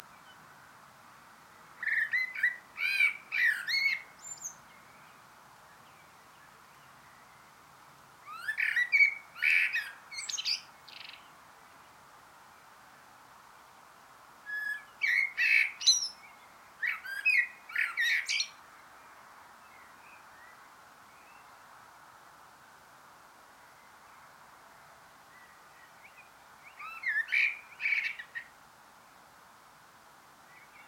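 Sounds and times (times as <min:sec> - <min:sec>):
Eurasian blackbird singing: 0:01.8 - 0:05.1, 0:08.3 - 0:11.3, 0:14.5 - 0:18.6, 0:25.4 - 0:28.5.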